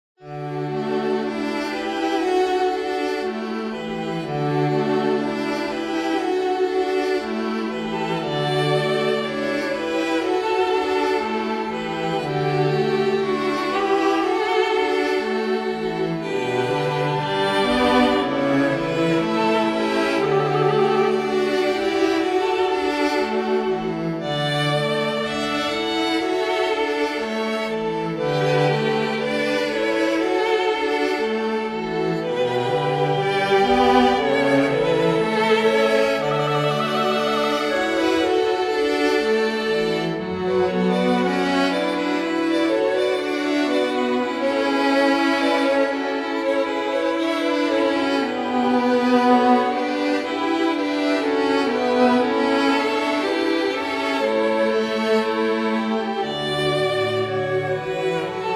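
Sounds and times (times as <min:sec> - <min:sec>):
string quartet: 0:00.2 - 0:58.5.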